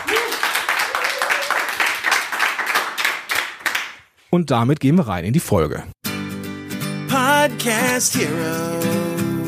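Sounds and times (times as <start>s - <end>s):
short applause from small live audience: 0.0s - 4.0s
speech: 4.3s - 6.0s, 7.1s - 9.3s.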